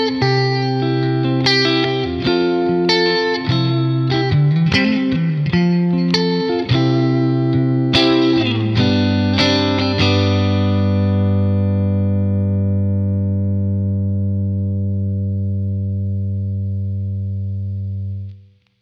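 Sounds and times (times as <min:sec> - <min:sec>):
clean Stratocaster electric guitar: 0:00.0 - 0:18.8.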